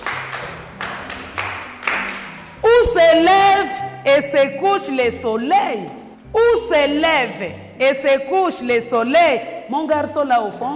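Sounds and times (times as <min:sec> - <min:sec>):
classroom applause from pupils: 0:00.0 - 0:02.6
speech: 0:04.1 - 0:10.7.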